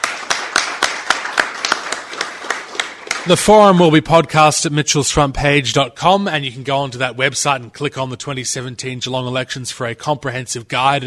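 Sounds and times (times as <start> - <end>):
small group applauding: 0.0 - 3.8
speech: 3.2 - 11.0.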